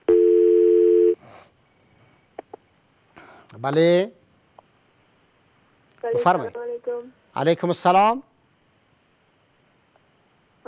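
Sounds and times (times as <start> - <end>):
telephone line tone as a radio call-in show takes the next caller: 0.0 - 1.2
speech: 3.6 - 4.2, 6.1 - 8.3.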